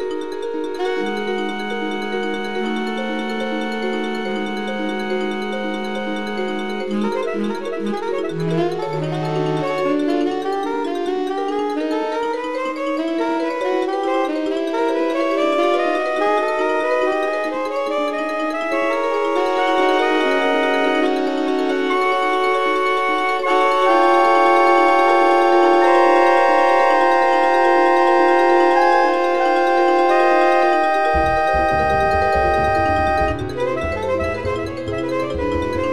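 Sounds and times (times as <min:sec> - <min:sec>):
bass in synth jazz piece: 0:00.0 - 0:35.9
soprano saxophone in synth jazz piece: 0:00.0 - 0:35.9
vibraphone in synth jazz piece: 0:00.0 - 0:35.9.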